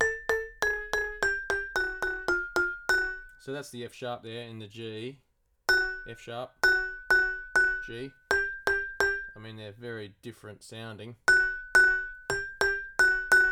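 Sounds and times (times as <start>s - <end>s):
short chromatic vibraphone notes: 0.0s - 3.4s, 5.7s - 9.4s, 11.3s - 13.5s.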